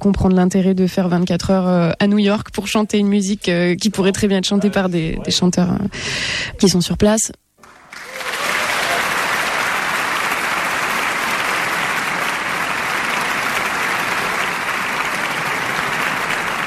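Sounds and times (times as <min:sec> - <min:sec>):
speech: 0:00.0 - 0:07.4
large audience applause after a performance: 0:07.6 - 0:16.6.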